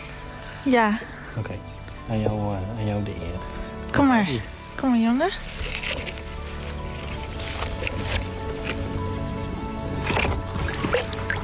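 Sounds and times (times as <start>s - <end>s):
speech: 0.6s - 5.8s
eel slipping from hands and splashing into dark water: 4.0s - 11.4s.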